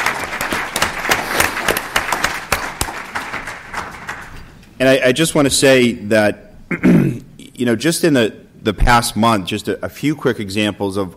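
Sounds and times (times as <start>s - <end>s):
audience applauding: 0.0s - 4.6s
speech: 4.8s - 11.1s.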